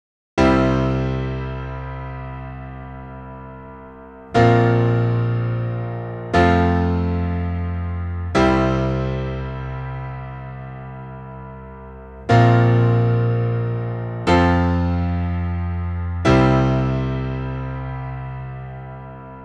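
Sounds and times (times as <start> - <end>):
piano: 0.4 - 19.4.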